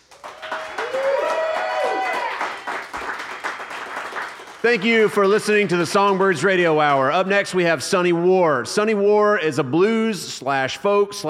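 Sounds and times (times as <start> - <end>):
audience applause: 0.0 - 6.3
long rising cheer or whoop: 0.2 - 2.7
speech: 4.6 - 11.2.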